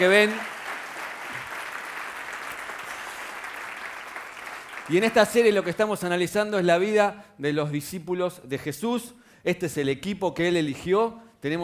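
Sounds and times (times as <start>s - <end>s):
speech: 0.0s - 0.5s, 4.9s - 11.6s
applause: 0.0s - 6.1s.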